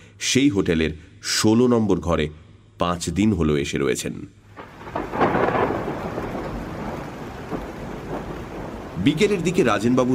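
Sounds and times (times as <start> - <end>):
speech: 0.2 - 4.4, 9.0 - 10.1
steady afternoon downpour rain: 4.5 - 10.1
thunder rumbling in an afternoon downpour: 4.5 - 10.1.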